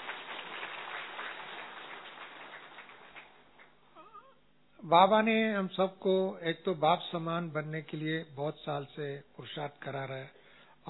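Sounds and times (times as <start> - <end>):
audience clapping: 0.0 - 3.8
speech: 4.8 - 10.8.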